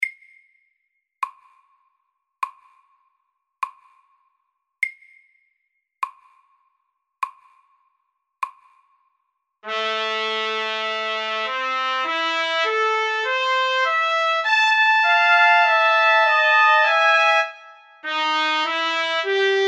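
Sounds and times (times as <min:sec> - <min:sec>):
duet in B minor: 0:09.6 - 0:19.6.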